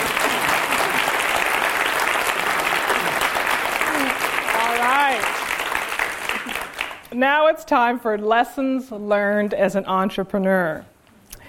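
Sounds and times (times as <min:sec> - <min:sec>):
crowd applause: 0:00.0 - 0:07.1
speech: 0:07.2 - 0:10.9.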